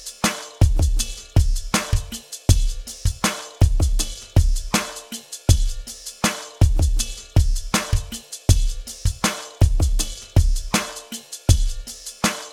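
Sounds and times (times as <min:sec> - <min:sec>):
drum beat: 0:00.0 - 0:12.5.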